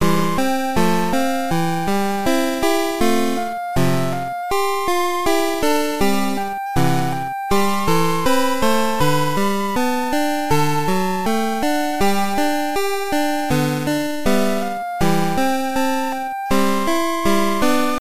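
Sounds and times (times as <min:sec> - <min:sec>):
flute melody: 0:00.0 - 0:18.0.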